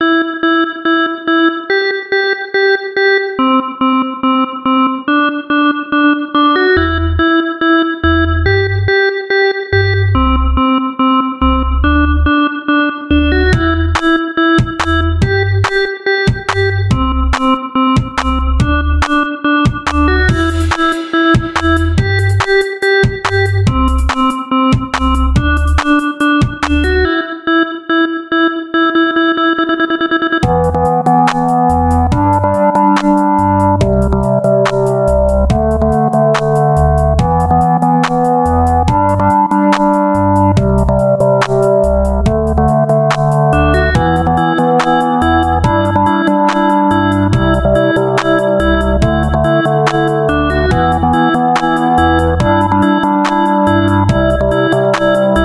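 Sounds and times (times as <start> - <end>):
instrumental music: 0.0 - 55.4.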